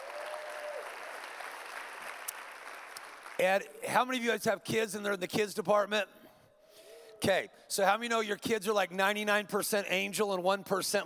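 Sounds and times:
audience applause: 0.0 - 3.4
speech: 3.4 - 6.2, 7.2 - 11.0.

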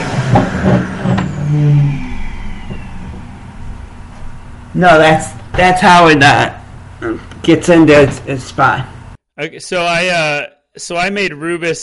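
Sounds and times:
vacuum cleaner running: 0.0 - 7.0
speech: 4.8 - 11.8.

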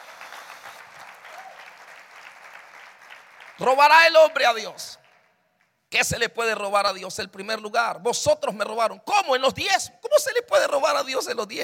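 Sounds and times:
crowd applauding: 0.0 - 5.4
speech: 3.6 - 5.0, 5.9 - 11.6.

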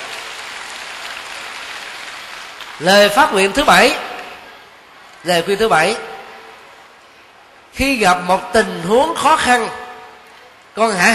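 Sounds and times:
audience applause: 0.0 - 4.3
speech: 2.8 - 4.0, 5.2 - 6.1, 7.8 - 9.8, 10.8 - 11.1.

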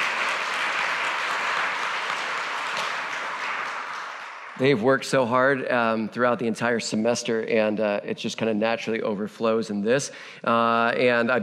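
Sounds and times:
audience applause: 0.0 - 4.8
speech: 4.6 - 11.4.

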